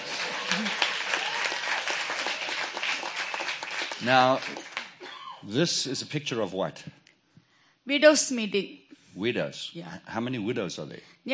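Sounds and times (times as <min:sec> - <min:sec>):
audience clapping: 0:00.0 - 0:05.2
speech: 0:04.0 - 0:04.7, 0:05.4 - 0:07.0, 0:07.9 - 0:11.3.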